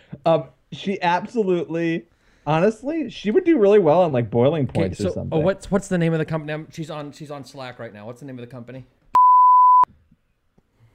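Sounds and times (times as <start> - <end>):
speech: 0.2 - 9.0
phone voicemail electronic beep: 9.2 - 9.9.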